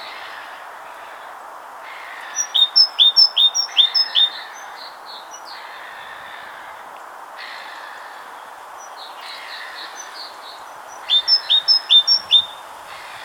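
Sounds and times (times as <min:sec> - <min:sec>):
background hiss: 0:00.0 - 0:13.2
great tit song: 0:02.3 - 0:05.5, 0:09.9 - 0:12.7.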